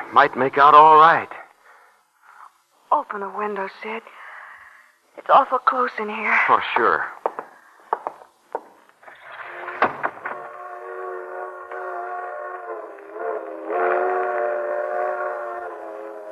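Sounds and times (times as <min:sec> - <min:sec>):
speech: 0:00.1 - 0:01.4, 0:02.9 - 0:04.2, 0:05.2 - 0:07.2
freight train whistle sounding a multi-tone chord: 0:10.2 - 0:16.2.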